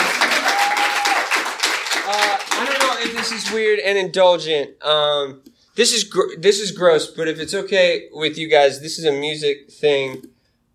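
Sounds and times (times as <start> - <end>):
crowd clapping: 0.0 - 3.8
speech: 3.2 - 10.4.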